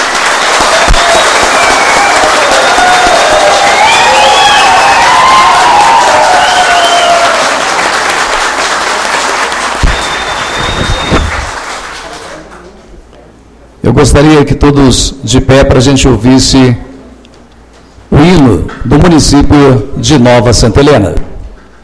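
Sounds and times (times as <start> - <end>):
crowd applauding: 0.0 - 12.8
cheers and whistles: 0.5 - 7.8, 9.7 - 11.6
speech: 13.9 - 16.9, 18.8 - 21.3.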